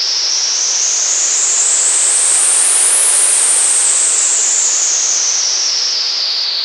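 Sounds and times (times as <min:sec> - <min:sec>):
breakdown sound effects: 0:00.1 - 0:06.5.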